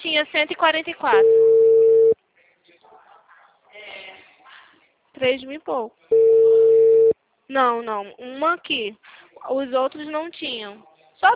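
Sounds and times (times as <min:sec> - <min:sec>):
speech: 0:00.2 - 0:01.5, 0:05.2 - 0:06.4, 0:07.5 - 0:11.3
telephone line tone while placing a call: 0:01.2 - 0:02.2, 0:06.1 - 0:07.2.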